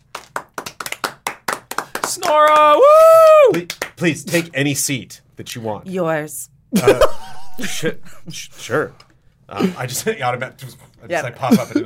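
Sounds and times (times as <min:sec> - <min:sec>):
hands clapping: 0:00.0 - 0:04.1
speech: 0:02.2 - 0:11.8
laughter: 0:06.8 - 0:08.7.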